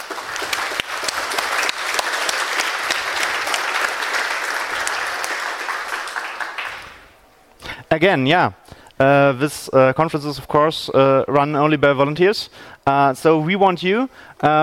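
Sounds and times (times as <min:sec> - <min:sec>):
conference audience applause: 0:00.0 - 0:07.2
speech: 0:07.9 - 0:14.6.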